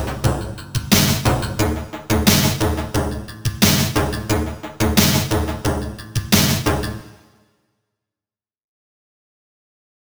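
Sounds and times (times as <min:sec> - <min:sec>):
background music: 0:00.0 - 0:07.4.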